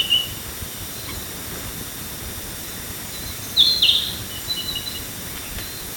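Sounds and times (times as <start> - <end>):
Narcissus flycatcher Ficedula narcissina singing bright whistled and warbled notes: 0.0 - 0.4, 3.1 - 5.8.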